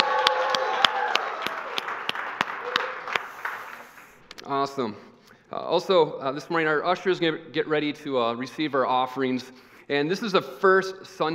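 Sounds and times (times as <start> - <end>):
audience applauding and cheering: 0.0 - 4.3
speech: 4.6 - 11.3.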